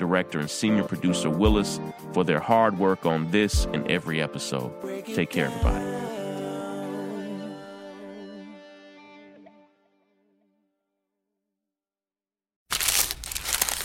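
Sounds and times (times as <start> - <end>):
music: 0.0 - 10.8
speech: 0.1 - 6.0
paper wrapper of a McDonald's steak, egg, and cheese bagel crinkling: 12.7 - 13.8.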